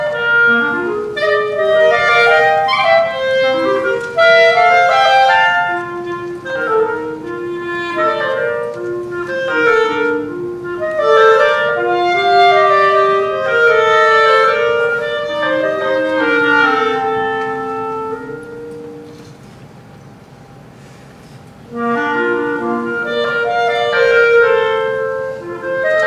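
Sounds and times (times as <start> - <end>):
two clarinets playing a duet: 0.0 - 19.9, 21.5 - 26.0.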